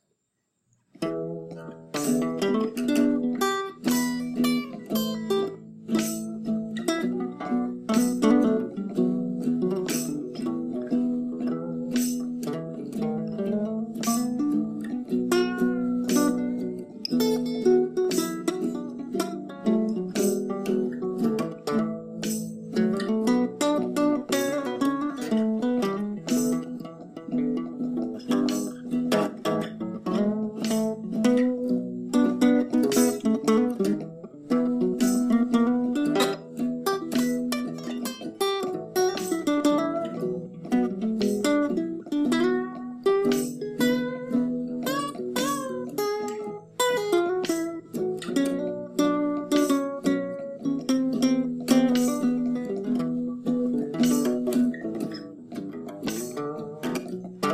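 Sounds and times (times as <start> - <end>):
blues music: 0.9 - 57.5.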